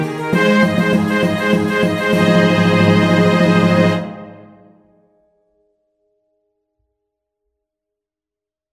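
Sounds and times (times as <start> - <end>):
loud trumpet air: 0.0 - 4.8.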